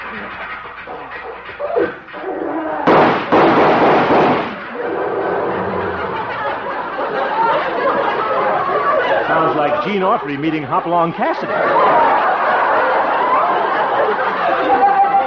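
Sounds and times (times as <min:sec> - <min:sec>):
speech: 0:00.2 - 0:00.6, 0:09.3 - 0:12.2
old tractor engine backfire bangs: 0:02.9 - 0:04.7
laughter: 0:04.7 - 0:15.2.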